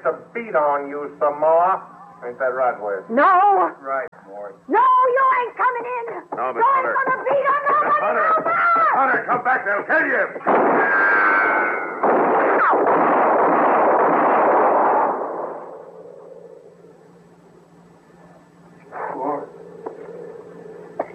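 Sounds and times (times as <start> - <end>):
speech: 0.0 - 11.8
low lingering hum: 0.0 - 21.1
gunshots in a dramatized scene: 10.4 - 15.8.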